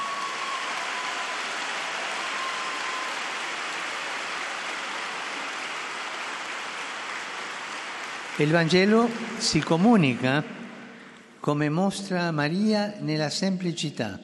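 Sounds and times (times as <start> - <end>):
audience applause: 0.0 - 11.2
speech: 8.4 - 10.6, 11.4 - 14.2.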